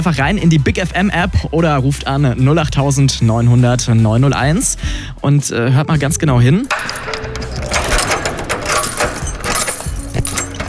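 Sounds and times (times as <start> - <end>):
speech: 0.0 - 7.2
key being handled: 6.7 - 10.6.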